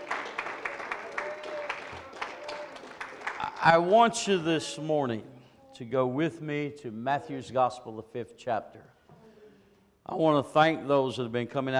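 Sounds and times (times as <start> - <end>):
audience clapping: 0.0 - 4.0
speech: 3.6 - 8.9, 10.1 - 11.7.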